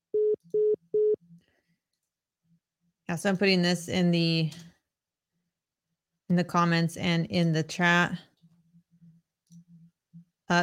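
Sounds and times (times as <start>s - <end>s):
telephone busy tone after the caller hangs up: 0.2s - 1.2s
speech: 3.1s - 4.7s, 6.3s - 8.3s.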